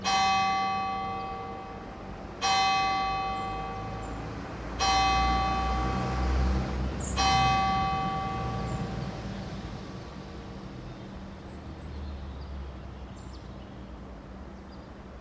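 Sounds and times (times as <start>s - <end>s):
bells in Alta Vallagarina: 0.0s - 11.7s
cars in Alta Vallagarina: 0.0s - 15.2s.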